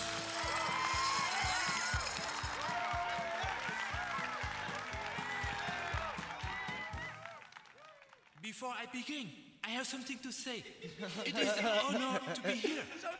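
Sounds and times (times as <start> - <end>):
audience applause welcoming a new singer at the Opry: 0.0 - 8.4
speech: 8.6 - 13.1
laughter: 10.8 - 13.1.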